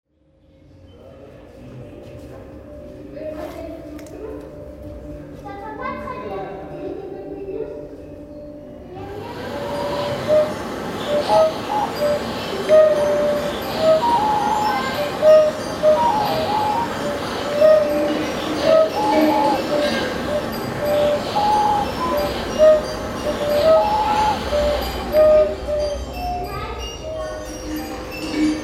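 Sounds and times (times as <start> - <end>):
flutes: 9.1 - 28.5.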